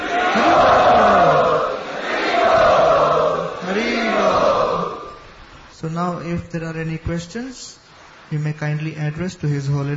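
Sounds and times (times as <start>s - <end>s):
audience chanting loudly in unison to welcome guests: 0.0s - 5.2s
speech: 6.0s - 9.9s.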